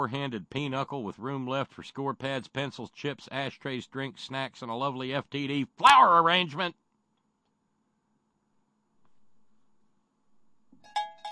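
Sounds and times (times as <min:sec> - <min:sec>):
speech: 0:00.0 - 0:06.8
advertising jingle: 0:10.8 - 0:11.3.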